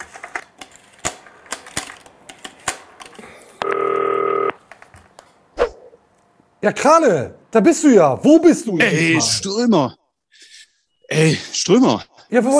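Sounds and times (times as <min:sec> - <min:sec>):
electronic phone ringing tone: 0:03.6 - 0:04.6
speech: 0:06.6 - 0:10.0, 0:11.2 - 0:12.5.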